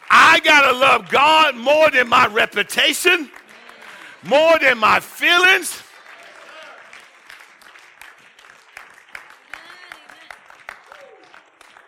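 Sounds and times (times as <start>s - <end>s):
audience clapping: 0.0s - 11.8s
scattered voices and shouts: 0.1s - 3.6s, 4.2s - 5.8s
speech: 0.4s - 3.4s, 4.2s - 5.9s.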